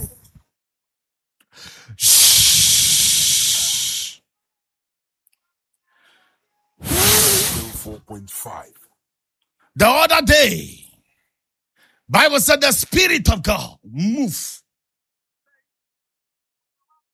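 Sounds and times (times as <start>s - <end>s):
preacher breathing out forcefully into the microphone: 1.5s - 4.2s
speech: 8.1s - 8.9s, 9.8s - 10.9s, 12.1s - 14.6s.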